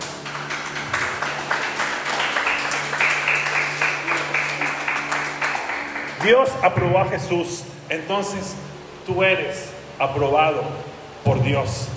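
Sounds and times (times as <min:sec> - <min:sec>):
audience applause: 0:00.0 - 0:06.6
speech: 0:06.2 - 0:11.9.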